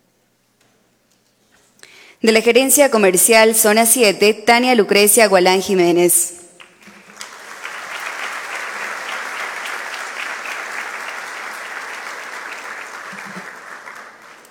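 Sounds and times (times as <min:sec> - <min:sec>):
speech: 0:02.2 - 0:06.4
audience applause: 0:06.6 - 0:14.4.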